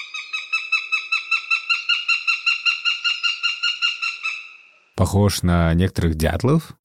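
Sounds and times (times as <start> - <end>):
falcon calling in shrill notes: 0.0 - 5.0
speech: 5.0 - 6.8.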